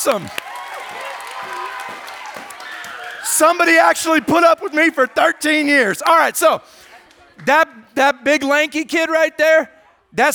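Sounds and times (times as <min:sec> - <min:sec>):
speech: 0:00.0 - 0:00.5, 0:03.3 - 0:10.3
audience applause: 0:00.0 - 0:06.3.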